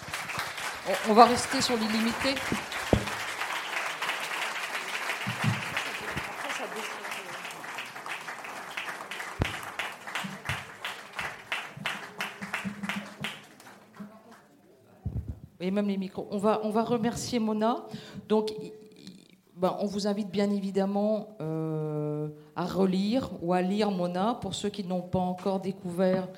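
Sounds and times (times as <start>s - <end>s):
audience applause: 0.0s - 14.4s
speech: 0.9s - 2.8s, 15.7s - 18.8s, 19.6s - 21.8s, 22.6s - 26.3s.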